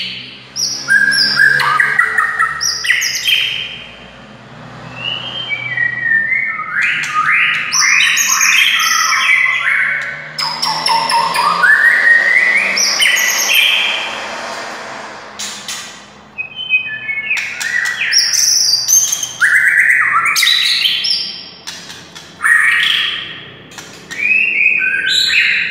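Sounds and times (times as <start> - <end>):
White-rumped shama song of slurred whistles and chirps: 0.1 - 3.8, 4.9 - 13.9, 16.4 - 21.5, 22.4 - 23.4, 24.1 - 25.6.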